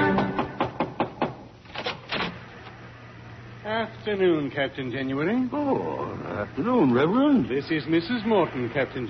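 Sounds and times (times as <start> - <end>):
knock at a wooden lighthouse door: 0.2 - 1.4
speech: 4.1 - 9.0.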